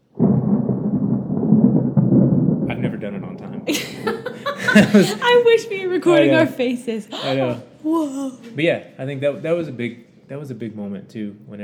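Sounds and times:
loud thunder clap and deep rumble: 0:00.0 - 0:05.1
laughter: 0:03.7 - 0:07.6
speech: 0:04.8 - 0:11.6.

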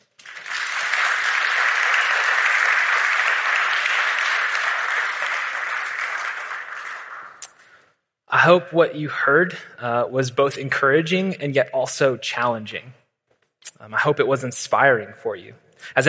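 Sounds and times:
church audience applause: 0:00.0 - 0:07.4
speech: 0:08.4 - 0:13.0, 0:13.8 - 0:16.0.

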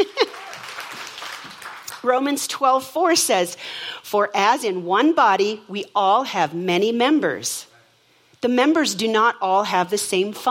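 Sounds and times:
speech: 0:00.0 - 0:00.3, 0:02.0 - 0:07.7, 0:08.4 - 0:10.4
audience applause: 0:00.2 - 0:02.0.

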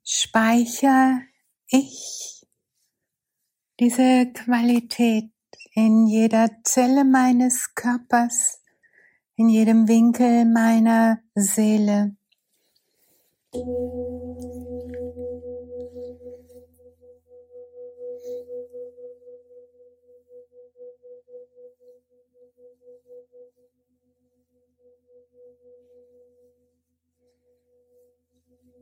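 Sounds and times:
speech: 0:00.1 - 0:02.3, 0:03.8 - 0:08.6, 0:09.4 - 0:12.2, 0:13.5 - 0:14.6
single gong struck: 0:13.6 - 0:19.8.

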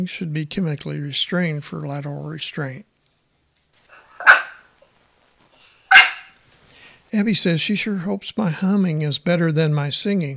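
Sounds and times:
speech: 0:00.0 - 0:02.9, 0:07.1 - 0:10.3
dog barking: 0:04.1 - 0:04.7, 0:05.9 - 0:06.4.

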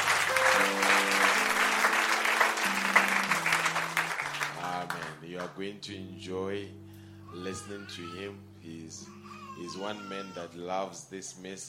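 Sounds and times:
round of applause: 0:00.0 - 0:05.5
speech: 0:05.4 - 0:11.6.

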